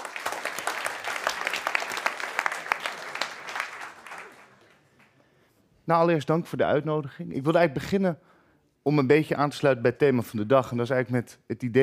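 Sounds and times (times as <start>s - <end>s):
audience applause: 0.0s - 5.1s
speech: 5.9s - 11.8s.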